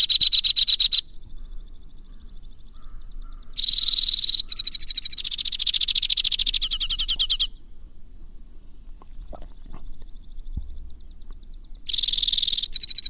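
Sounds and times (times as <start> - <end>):
white-winged crossbill delivering rapid high rattling trills: 0.0 - 7.6, 10.2 - 13.0.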